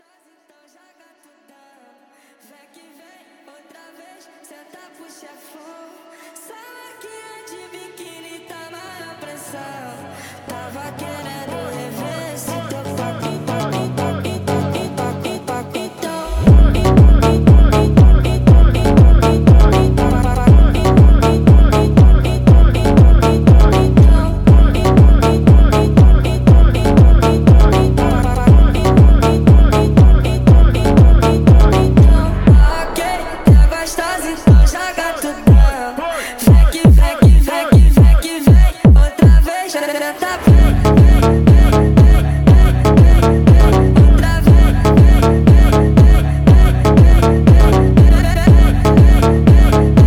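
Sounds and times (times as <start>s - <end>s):
phonk music: 11.7s - 50.0s.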